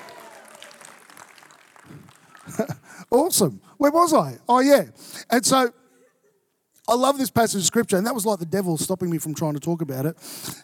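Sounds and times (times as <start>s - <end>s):
audience applause: 0.0s - 2.8s
speech: 2.5s - 5.8s, 6.9s - 10.6s.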